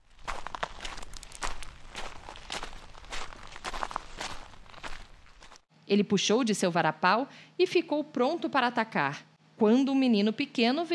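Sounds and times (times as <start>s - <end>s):
footsteps: 0.0s - 5.7s
speech: 5.9s - 10.9s.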